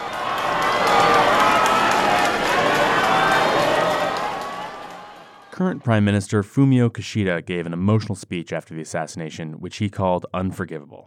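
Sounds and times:
street crowd clapping at funeral procession: 0.0 - 6.2
speech: 5.6 - 11.0.

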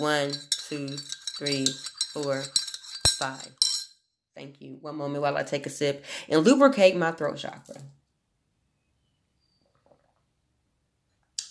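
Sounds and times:
speech: 0.0 - 2.6, 3.2 - 3.6, 4.4 - 8.0
spoon stirring ginger tea in cup: 0.0 - 3.9.

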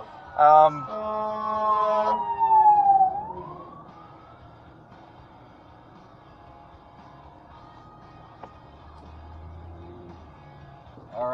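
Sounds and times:
fire truck siren wailing passing by: 0.0 - 8.5
low road rumble: 0.0 - 11.3.

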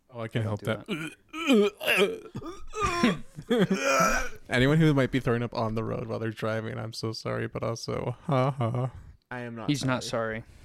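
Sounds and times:
speech: 0.2 - 10.6
loud croaky burps into a microphone: 0.9 - 4.4.

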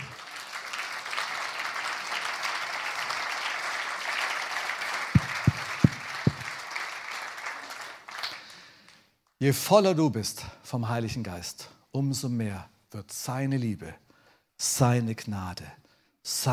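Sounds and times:
crowd applauding: 0.0 - 9.0
sharp low thumps: 5.2 - 6.4
speech: 9.4 - 14.0, 14.6 - 16.5.

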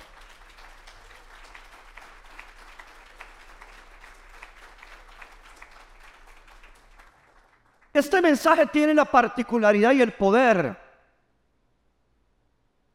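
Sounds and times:
audience applauding: 0.0 - 8.2
speech: 8.0 - 10.8.

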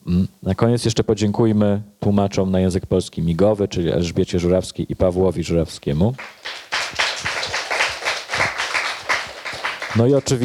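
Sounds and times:
speech: 0.1 - 6.6, 10.0 - 10.4
audience applause: 6.2 - 10.4.

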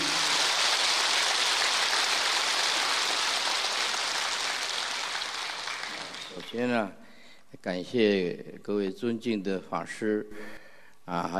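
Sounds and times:
audience applause: 0.0 - 6.6
speech: 6.5 - 7.0, 7.6 - 11.3.

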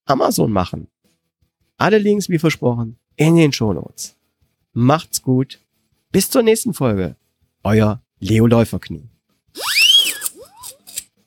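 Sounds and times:
speech: 0.1 - 1.0, 1.8 - 4.2, 4.8 - 9.7
hand-cranked siren: 9.6 - 11.0.

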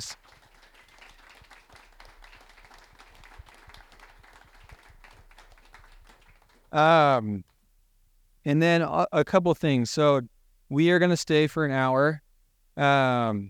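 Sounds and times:
speech: 0.0 - 0.2, 6.7 - 7.5, 8.4 - 12.2, 12.8 - 13.4
audience applause: 0.0 - 6.8.

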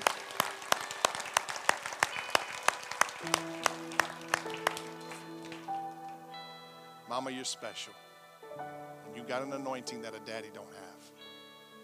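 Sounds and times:
audience applause: 0.0 - 6.5
speech: 7.2 - 10.8.

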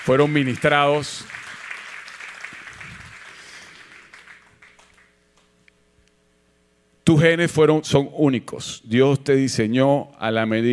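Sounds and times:
speech: 0.0 - 1.4, 7.1 - 10.7
audience applause: 0.0 - 5.1.

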